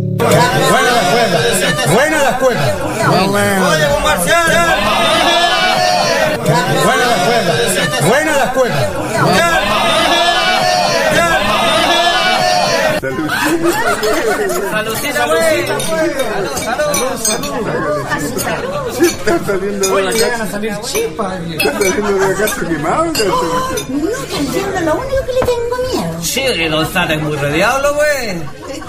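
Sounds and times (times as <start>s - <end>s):
laughter: 0.2s - 19.5s, 21.7s - 24.9s, 28.3s - 28.8s
crowd chatter at the Canto Libre chingana: 0.2s - 28.8s
speech: 1.7s - 5.1s, 13.1s - 28.8s
clinking of glass and dishes: 14.8s - 24.0s.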